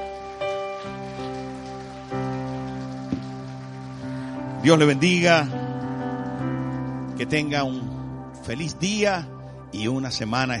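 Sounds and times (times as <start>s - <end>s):
applause: 0.0s - 8.0s
speech: 4.6s - 5.6s, 7.2s - 10.5s.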